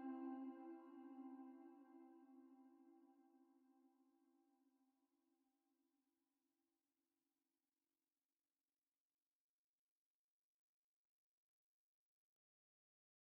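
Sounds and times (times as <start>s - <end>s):
duduk: 0.0s - 2.4s.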